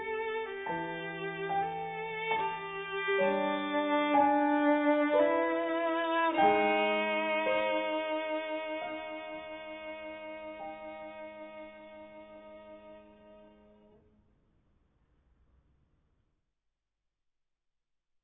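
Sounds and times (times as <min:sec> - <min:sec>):
violin: 0:00.0 - 0:14.0.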